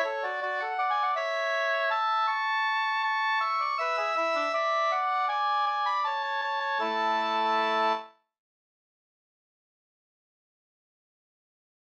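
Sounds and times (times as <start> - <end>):
waltz music: 0.0 - 8.2.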